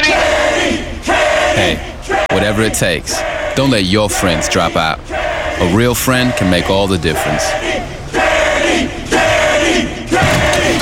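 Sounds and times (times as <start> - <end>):
crowd shouting and cheering: 0.0 - 10.8
speech: 1.6 - 8.0.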